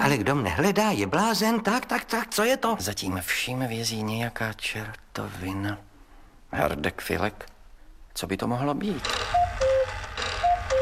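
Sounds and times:
speech: 0.1 - 5.9, 6.5 - 7.5, 8.2 - 9.4
cuckoo clock calling: 9.0 - 10.8.

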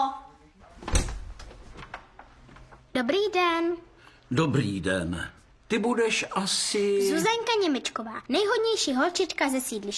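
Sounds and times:
home's front door opening: 0.6 - 2.8
speech: 3.0 - 9.9.

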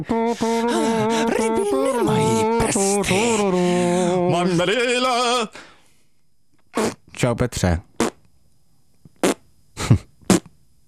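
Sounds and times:
speech: 0.0 - 5.7, 6.8 - 7.9
fart: 6.7 - 7.0, 8.0 - 8.2, 9.2 - 10.6.

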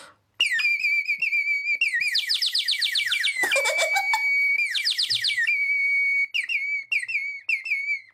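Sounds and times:
clay bird whistle trilling and warbling: 0.4 - 8.1.

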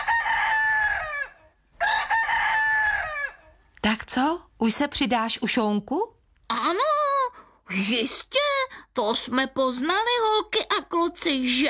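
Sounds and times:
rooster crowing: 0.0 - 3.6
speech: 3.8 - 6.8, 7.7 - 11.6.

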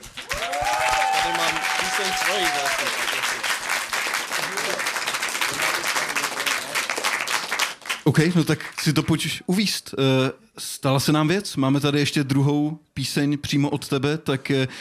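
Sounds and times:
audience applause: 0.0 - 9.1
speech: 2.1 - 3.0, 8.1 - 14.7.

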